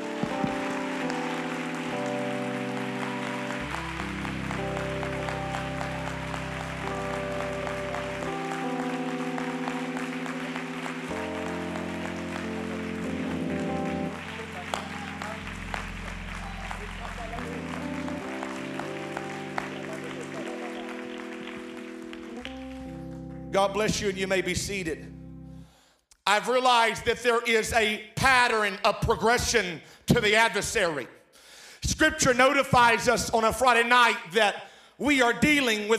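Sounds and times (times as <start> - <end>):
large audience clapping hands: 0.0 - 24.5
sustained organ or keyboard chords: 0.0 - 29.6
speech: 23.6 - 25.1, 26.3 - 31.2, 32.0 - 35.9.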